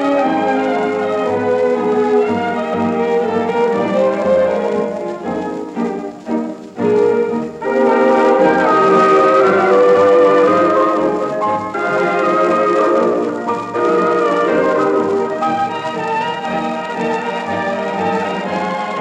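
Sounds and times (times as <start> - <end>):
orchestra playing tango: 0.0 - 18.9.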